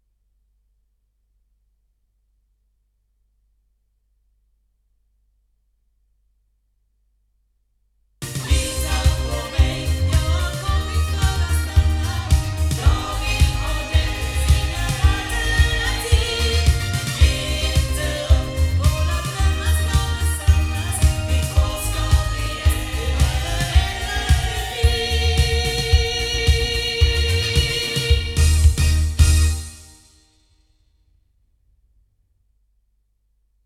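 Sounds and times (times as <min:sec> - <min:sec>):
loudspeakers in Hamburg: 0:08.4 - 0:29.0.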